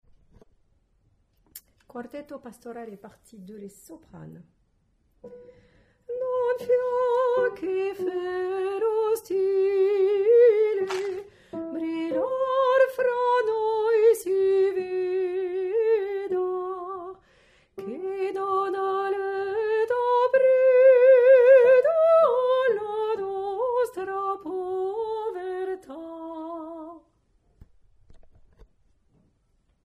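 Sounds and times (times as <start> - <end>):
soprano singing: 6.1 - 17.2, 17.8 - 27.1.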